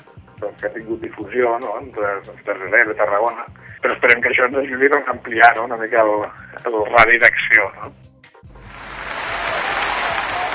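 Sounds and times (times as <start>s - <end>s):
speech: 0.4s - 8.1s
audience applause: 8.6s - 10.5s.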